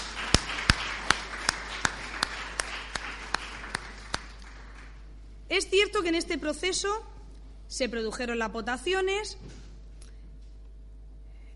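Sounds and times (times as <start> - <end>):
audience applause: 0.0 - 5.1
speech: 5.5 - 7.1, 7.7 - 9.6.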